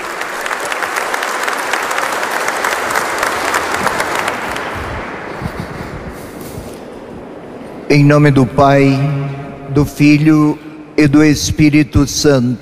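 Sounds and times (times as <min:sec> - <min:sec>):
warm round of applause: 0:00.0 - 0:05.5
speech: 0:07.9 - 0:12.6.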